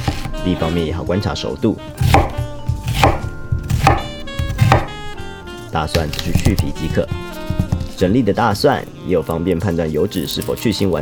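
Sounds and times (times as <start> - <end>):
knife chopping an onion into large chunks: 0.0 - 0.8, 2.0 - 5.2, 5.9 - 8.8
speech: 0.4 - 2.4, 5.8 - 7.2, 8.0 - 10.9.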